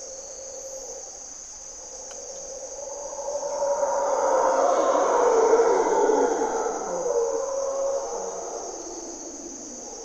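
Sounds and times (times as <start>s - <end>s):
steady high insect whine: 0.0s - 10.0s
mantled howler monkeys roaring in Corcovado: 2.6s - 10.0s.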